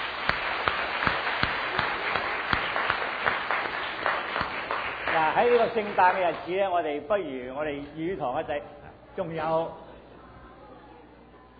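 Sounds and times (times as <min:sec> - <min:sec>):
audience applause in welcome: 0:00.0 - 0:06.7
speech: 0:05.3 - 0:09.8.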